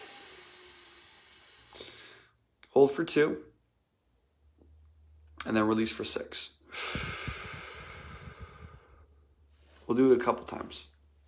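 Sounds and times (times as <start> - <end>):
breath drawn in through the nose during a guided breathing exercise: 0.0 - 2.4, 6.7 - 9.8
speech: 2.8 - 3.5, 5.4 - 7.1, 9.9 - 10.9.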